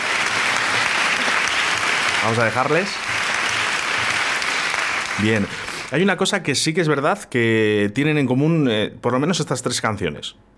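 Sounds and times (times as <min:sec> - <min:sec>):
applause: 0:00.0 - 0:06.0
speech: 0:02.2 - 0:03.0, 0:05.2 - 0:10.5.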